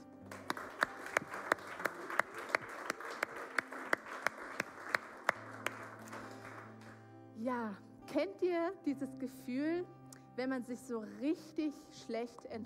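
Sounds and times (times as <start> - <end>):
audience applause: 0.2 - 7.0
speech: 7.4 - 12.6.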